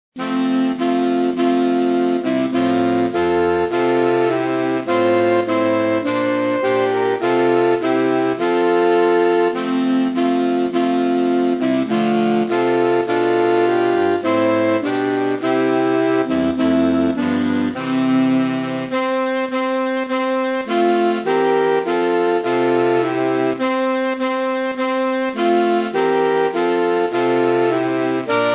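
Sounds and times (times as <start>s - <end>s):
saxophone: 0.2s - 28.5s.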